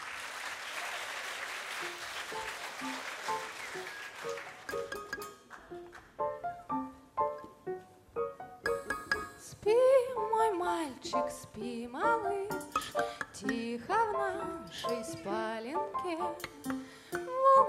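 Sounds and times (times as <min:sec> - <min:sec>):
audience applause: 0:00.0 - 0:06.2
speech: 0:01.8 - 0:06.6, 0:09.6 - 0:16.8
melodic instrumental music with plucked or struck notes: 0:02.3 - 0:09.4, 0:12.0 - 0:17.6.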